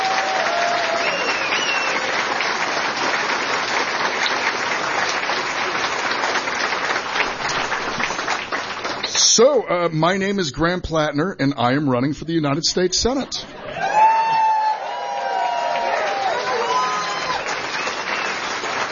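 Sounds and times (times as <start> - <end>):
crowd applauding: 0.0 - 9.7, 13.6 - 18.8
whistles: 0.9 - 2.1, 16.9 - 18.6
speech: 9.4 - 13.6.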